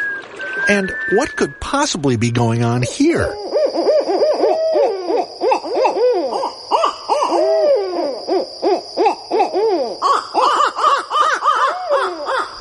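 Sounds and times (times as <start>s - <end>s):
speech: 0.7s - 3.6s
male and female barred owls hooting and cackling in a duet: 2.8s - 12.5s.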